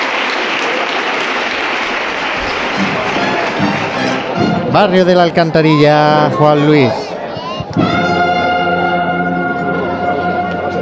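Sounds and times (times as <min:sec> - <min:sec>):
applause inside a church: 0:00.0 - 0:07.9
faint murmur of voices: 0:00.0 - 0:10.8
speech: 0:04.7 - 0:07.0.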